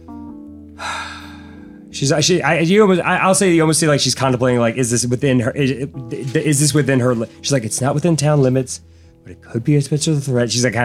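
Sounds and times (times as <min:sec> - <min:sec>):
person imitating a character breathing hard: 0:00.8 - 0:01.8
speech: 0:02.0 - 0:10.8.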